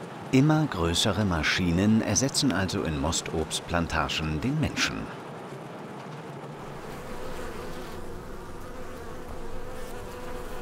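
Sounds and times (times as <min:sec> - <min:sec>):
speech: 0:00.3 - 0:05.2
honeybees buzzing in an orchard: 0:06.6 - 0:10.6.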